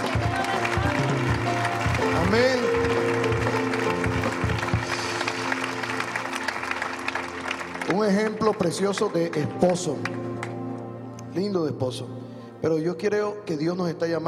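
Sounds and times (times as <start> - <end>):
audience applause: 0.0 - 10.5
speech: 8.1 - 10.2, 11.4 - 14.2.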